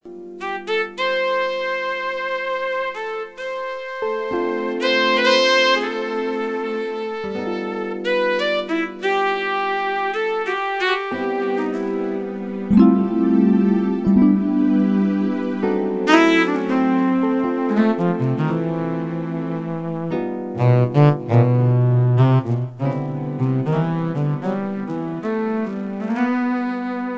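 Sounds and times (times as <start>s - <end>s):
saxophone: 0.4s - 27.1s.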